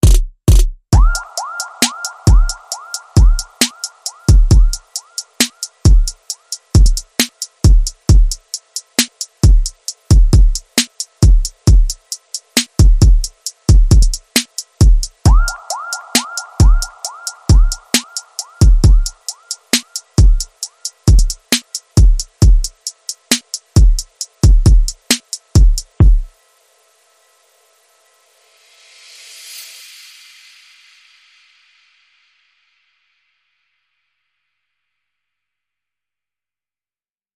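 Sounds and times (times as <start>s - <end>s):
soul beat: 0.0s - 26.3s.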